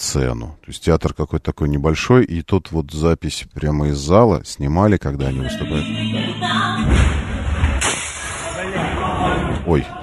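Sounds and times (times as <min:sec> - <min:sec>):
speech: 0:00.1 - 0:07.1, 0:09.6 - 0:10.0
rocket strike explosion: 0:06.8 - 0:09.0.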